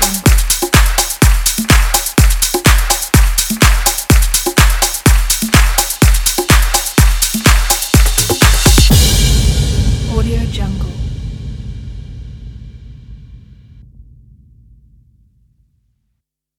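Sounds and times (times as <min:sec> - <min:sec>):
music beat: 0:00.0 - 0:12.6.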